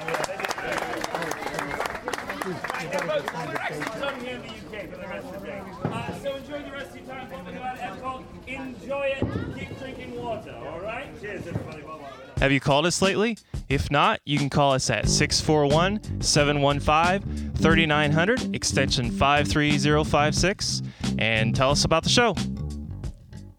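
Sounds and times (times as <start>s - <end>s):
audience applause: 0.0s - 4.4s
speech: 2.5s - 22.5s.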